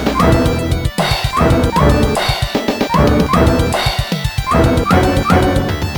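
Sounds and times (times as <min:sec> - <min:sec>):
OPNA boss music: 0:00.2 - 0:02.3, 0:02.9 - 0:05.8.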